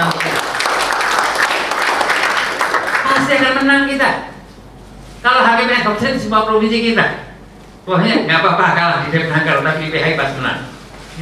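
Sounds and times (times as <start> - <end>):
audience applause: 0.0 - 3.3
speech: 5.2 - 7.3, 7.9 - 11.1.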